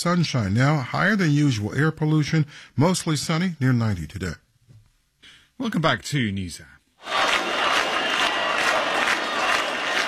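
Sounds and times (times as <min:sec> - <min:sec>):
speech: 0:00.0 - 0:04.4, 0:05.6 - 0:07.2
protesters cheering in Albania: 0:07.0 - 0:10.0
protesters in Albania chanting at a nightly demonstration: 0:07.0 - 0:10.0.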